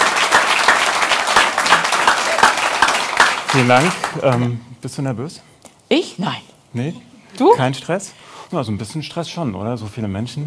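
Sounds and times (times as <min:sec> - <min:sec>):
audience applause: 0:00.0 - 0:04.6
speech: 0:03.6 - 0:10.4.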